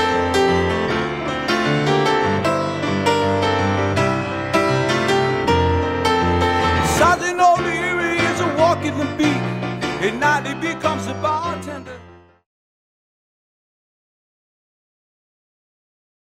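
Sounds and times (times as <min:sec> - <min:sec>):
solo piano: 0:00.0 - 0:12.5.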